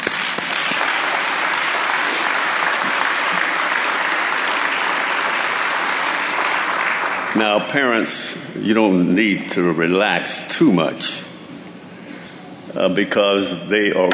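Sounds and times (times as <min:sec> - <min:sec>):
audience applauding: 0:00.0 - 0:07.7
speech: 0:07.4 - 0:11.3, 0:12.8 - 0:14.1.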